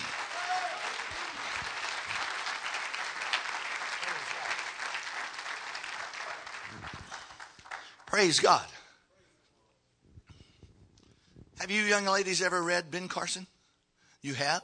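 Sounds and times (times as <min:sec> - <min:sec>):
audience clapping hands: 0:00.0 - 0:08.6
speech: 0:08.2 - 0:08.7, 0:11.9 - 0:13.6, 0:14.2 - 0:14.6.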